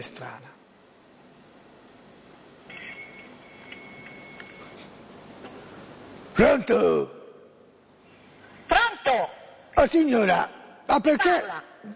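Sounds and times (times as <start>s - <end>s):
speech: 0.0s - 0.6s, 6.4s - 7.2s, 9.1s - 11.9s
faint thin high telephone line tone: 2.7s - 4.9s.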